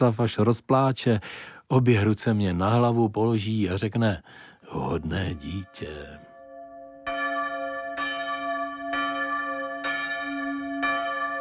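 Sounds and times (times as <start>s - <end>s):
speech: 0.0s - 6.3s
church bell striking the fifth hour: 5.3s - 11.3s.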